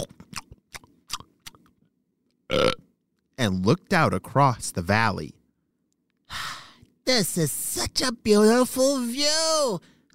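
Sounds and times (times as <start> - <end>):
llama chewing plants: 0.0 - 1.7
speech: 3.4 - 5.4, 7.1 - 10.1.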